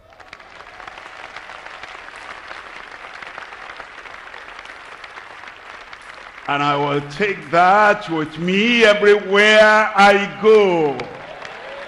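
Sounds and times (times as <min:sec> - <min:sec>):
audience clapping: 0:00.0 - 0:11.8
speech: 0:06.5 - 0:11.2.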